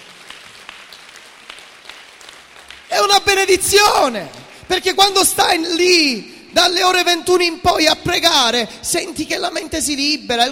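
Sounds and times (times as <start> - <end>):
audience applause: 0.0 - 3.3
speech: 3.0 - 10.5.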